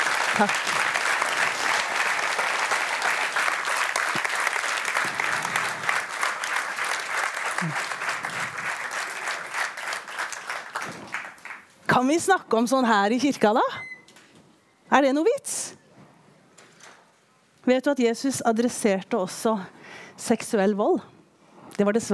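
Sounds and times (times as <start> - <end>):
warm applause: 0.0 - 11.8
speech: 0.4 - 0.8, 12.0 - 13.9, 15.0 - 15.6, 17.7 - 21.1, 21.8 - 22.1.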